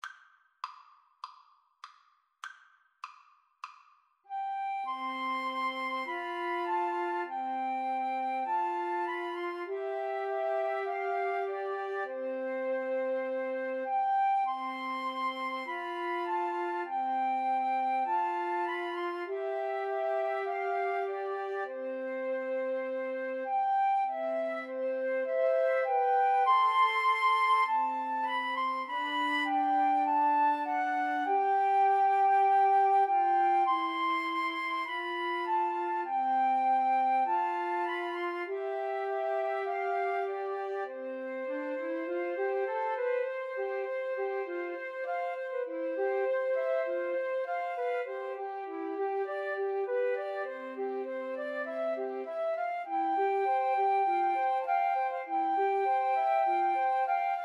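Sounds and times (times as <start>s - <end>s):
flute trio playing: 4.3s - 57.4s.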